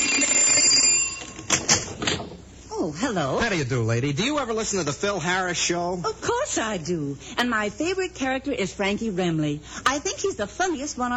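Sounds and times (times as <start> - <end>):
doorbell ringing: 0.0 - 2.0
speech: 3.1 - 11.1.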